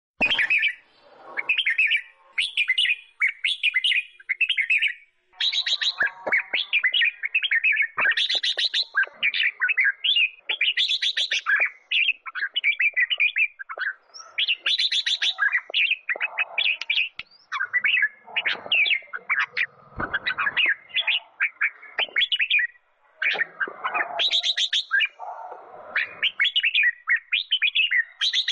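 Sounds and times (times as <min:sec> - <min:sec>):
sooty-headed bulbul singing: 0:00.2 - 0:28.5.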